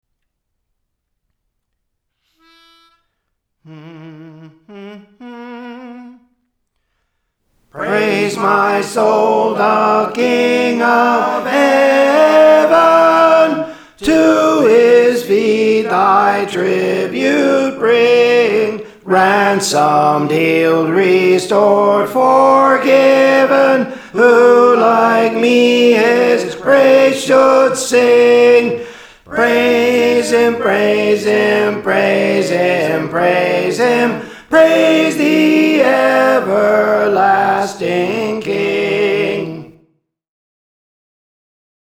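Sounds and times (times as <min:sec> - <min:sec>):
tenor singing: 0:07.7 - 0:39.8.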